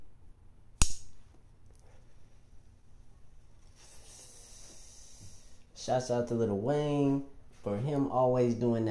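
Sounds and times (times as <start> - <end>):
lighting up a smoke: 0.8 - 1.1
speech: 5.8 - 8.8.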